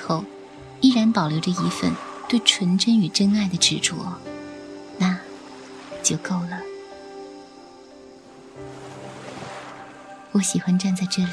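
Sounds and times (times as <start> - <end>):
ocean waves: 0.0 - 11.3
speech: 0.1 - 4.3, 6.0 - 6.7, 10.3 - 11.3.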